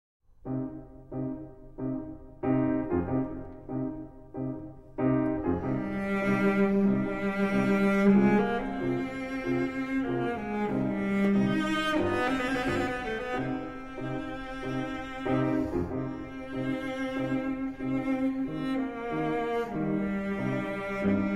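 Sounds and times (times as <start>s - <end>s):
piano trio: 0.4s - 21.3s.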